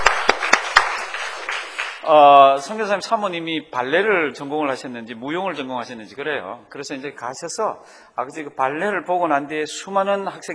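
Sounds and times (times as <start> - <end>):
audience members clapping in encouragement for a teacher: 0.0 - 2.1
speech: 2.1 - 10.5.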